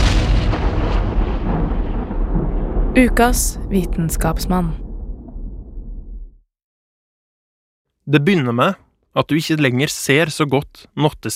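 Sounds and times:
Big Bang explosion sound effect: 0.0s - 6.5s
speech: 3.0s - 4.8s, 8.1s - 11.3s.

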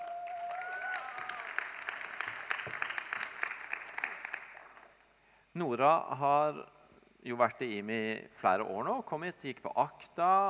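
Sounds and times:
audience applause: 0.0s - 4.9s
speech: 5.6s - 10.4s.

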